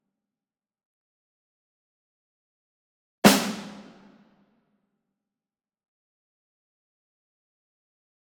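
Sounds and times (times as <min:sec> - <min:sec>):
single high-tension snare drum hit, medium: 0:03.2 - 0:04.2.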